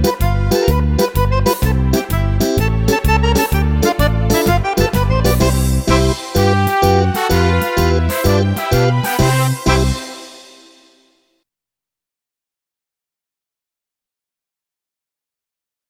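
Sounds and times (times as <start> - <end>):
accordion folk dance tune: 0.0 - 11.1.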